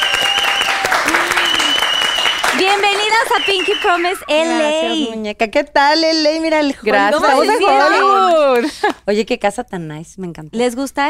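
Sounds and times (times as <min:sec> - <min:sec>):
applause: 0:00.0 - 0:04.3
speech: 0:02.8 - 0:11.0.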